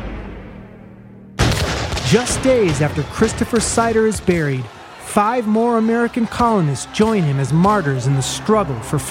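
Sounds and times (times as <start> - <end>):
musket fire as British soldiers open fire in a melee: 1.4 - 2.8
speech: 2.1 - 9.0.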